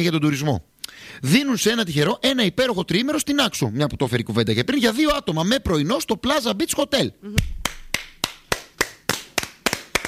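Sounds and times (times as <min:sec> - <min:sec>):
speech: 0:00.0 - 0:07.6
person clapping: 0:07.4 - 0:10.0.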